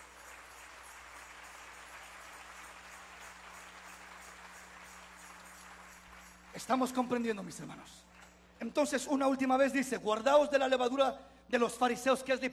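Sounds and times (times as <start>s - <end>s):
audience applauding: 0.0s - 8.3s
low electrical hum: 0.0s - 12.5s
speech: 6.6s - 12.5s.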